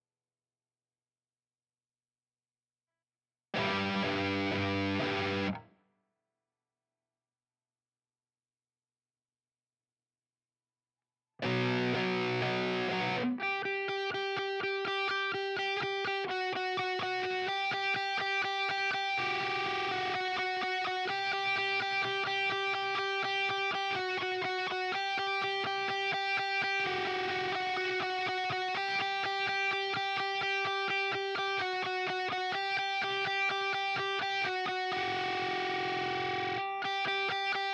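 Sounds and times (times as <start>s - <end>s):
guitar: 3.5s - 5.8s, 11.4s - 37.7s.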